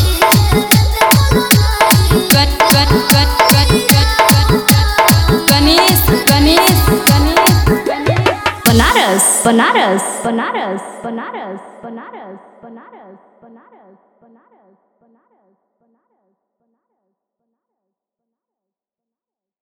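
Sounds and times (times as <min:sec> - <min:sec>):
Bhojpuri DJ remix song: 0:00.0 - 0:12.6.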